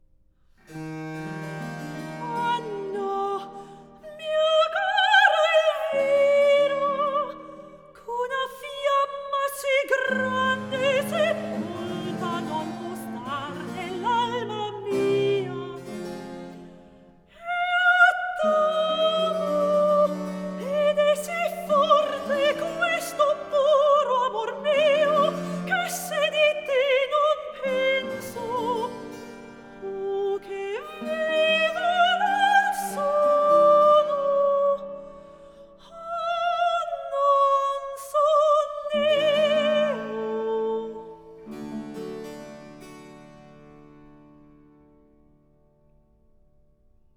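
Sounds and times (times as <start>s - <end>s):
cantata recitative: 0.7s - 42.2s.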